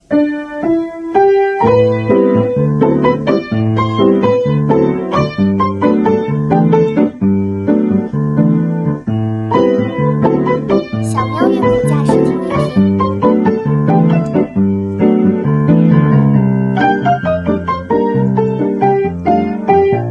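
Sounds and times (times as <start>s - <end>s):
bossa nova music: 0.1s - 20.1s.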